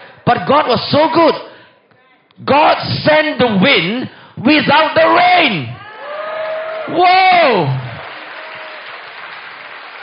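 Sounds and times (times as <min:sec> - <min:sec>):
speech: 0:00.3 - 0:01.5, 0:02.4 - 0:05.8, 0:06.9 - 0:07.8
audience applause: 0:06.0 - 0:10.0.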